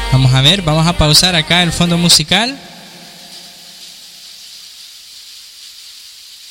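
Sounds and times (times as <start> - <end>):
speech: 0.1 - 2.7
rain falling: 2.7 - 6.5.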